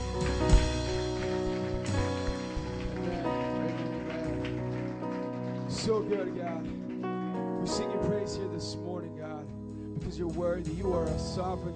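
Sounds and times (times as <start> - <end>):
audience clapping in praise: 0.0 - 8.0
speech: 5.8 - 6.9, 7.6 - 9.2, 10.0 - 11.7.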